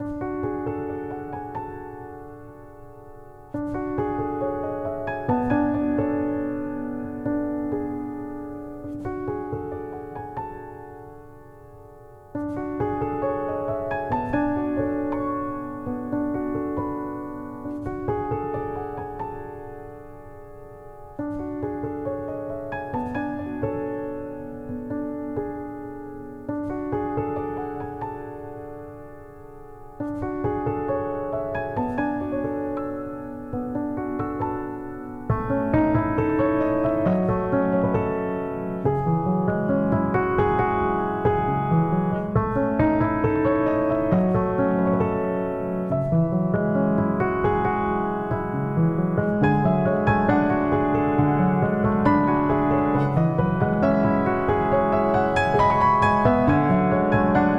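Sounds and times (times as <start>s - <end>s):
piano arrangement: 0.0s - 57.5s.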